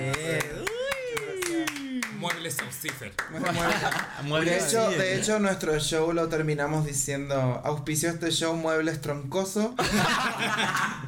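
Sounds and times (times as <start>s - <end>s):
clapping: 0.0s - 4.2s
speech: 2.5s - 11.0s
laughter: 3.3s - 5.3s, 9.8s - 11.0s.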